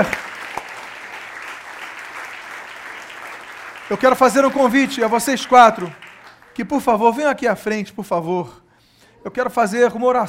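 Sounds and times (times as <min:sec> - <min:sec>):
speech: 0:00.0 - 0:00.2, 0:03.9 - 0:06.0, 0:06.6 - 0:08.6, 0:09.2 - 0:10.2
audience applauding: 0:00.0 - 0:06.8.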